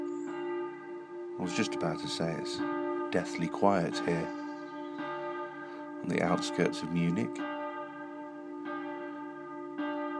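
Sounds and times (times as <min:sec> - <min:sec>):
church bell tower ringing at 7 a.m. near Munich: 0:00.0 - 0:10.1
speech: 0:01.4 - 0:04.4, 0:06.0 - 0:07.5.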